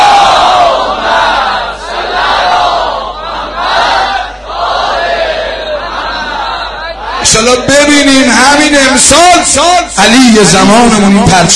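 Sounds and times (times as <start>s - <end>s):
large crowd reciting salawat at a religious gathering: 0.0s - 7.5s
speech: 7.4s - 11.5s.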